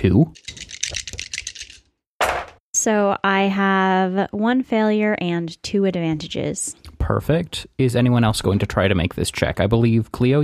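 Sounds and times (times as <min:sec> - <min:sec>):
speech: 0:00.0 - 0:00.6, 0:02.8 - 0:10.4
several dice rattling: 0:00.4 - 0:01.9.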